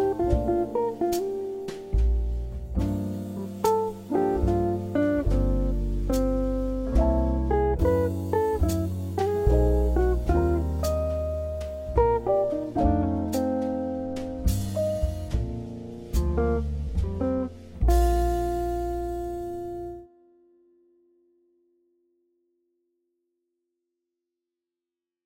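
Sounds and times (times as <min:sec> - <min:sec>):
background jazz: 0:00.0 - 0:20.1.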